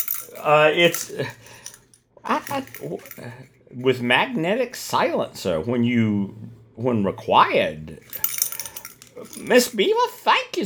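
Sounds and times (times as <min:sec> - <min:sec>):
bear bells jingling: 0:00.0 - 0:03.4, 0:08.0 - 0:09.9
speech: 0:00.3 - 0:01.6, 0:02.2 - 0:08.4, 0:09.2 - 0:10.6.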